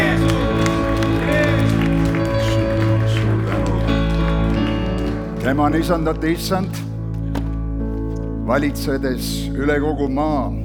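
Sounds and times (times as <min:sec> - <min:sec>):
audience applauding: 0:00.0 - 0:06.4
low musical drone: 0:00.0 - 0:10.6
speech: 0:05.5 - 0:06.8, 0:08.5 - 0:10.6.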